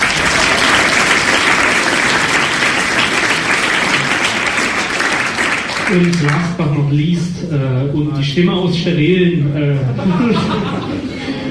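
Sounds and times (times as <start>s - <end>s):
audience applause: 0.0s - 6.6s
speech: 5.9s - 11.1s
laughter: 9.8s - 11.5s.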